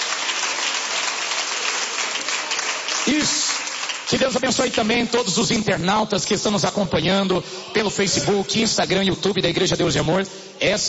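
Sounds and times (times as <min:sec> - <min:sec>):
audience clapping: 0:00.0 - 0:05.7
speech: 0:03.0 - 0:03.4, 0:04.1 - 0:10.8.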